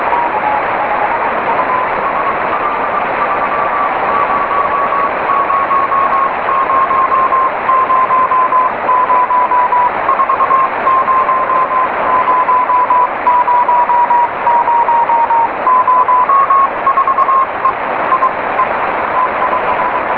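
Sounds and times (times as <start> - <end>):
CW Morse code beeps: 0.2 - 20.1.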